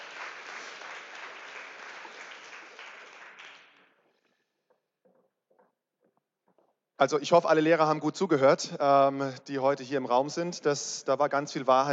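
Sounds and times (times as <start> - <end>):
audience applause: 0.0 - 3.9
speech: 7.0 - 11.9.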